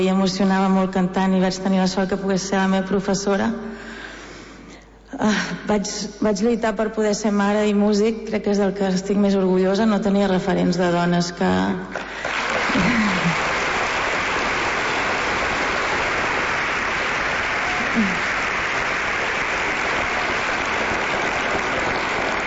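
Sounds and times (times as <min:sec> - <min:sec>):
speech: 0:00.0 - 0:03.9, 0:05.2 - 0:13.0
audience applause: 0:12.2 - 0:22.4.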